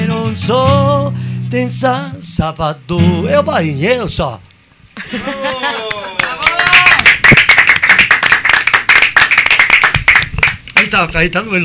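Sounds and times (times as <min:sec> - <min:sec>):
speech: 0:00.4 - 0:06.2, 0:10.9 - 0:11.6
laughter: 0:05.0 - 0:06.6
applause after a live song: 0:05.8 - 0:11.0.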